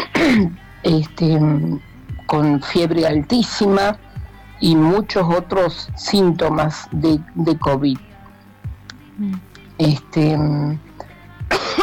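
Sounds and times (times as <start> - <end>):
person clearing throat: 0.0 - 0.6, 11.5 - 11.8
person coughing: 0.0 - 0.6, 11.5 - 11.8
speech: 0.2 - 8.1, 9.2 - 10.9.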